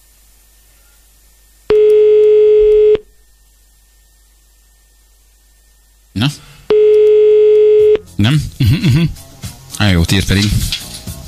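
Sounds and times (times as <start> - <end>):
telephone tone as a call is placed to a radio listener: 1.7 - 3.1, 6.7 - 8.0
speech: 6.2 - 6.5, 8.2 - 9.2, 9.8 - 10.8.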